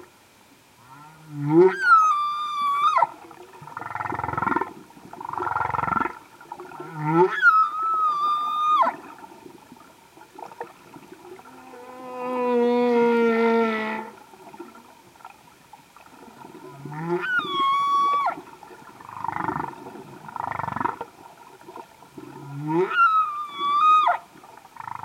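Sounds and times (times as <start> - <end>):
humpback whale singing full song: 1.3 - 4.5, 6.7 - 9.2, 11.3 - 14.5, 16.4 - 21.0, 22.2 - 25.0.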